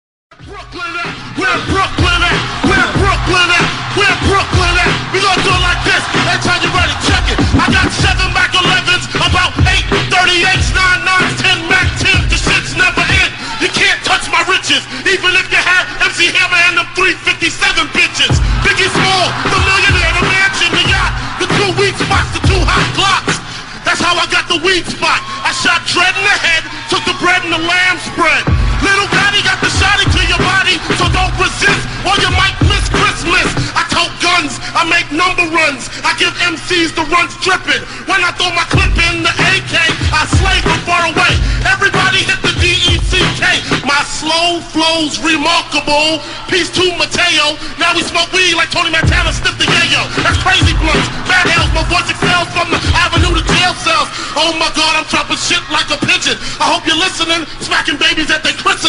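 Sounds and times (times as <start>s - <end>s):
battle rap: 0.3s - 58.8s.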